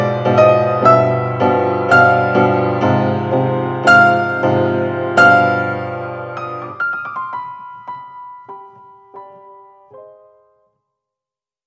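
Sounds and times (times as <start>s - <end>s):
advanced piano playing: 0.0s - 10.8s.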